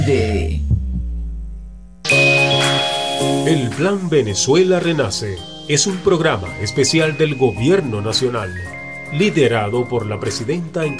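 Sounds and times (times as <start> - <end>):
speech: 0.0 - 0.7, 3.5 - 10.9
heartbeat sound effect in radio jingle: 0.0 - 1.8
loud bright electronic chord: 2.0 - 10.9.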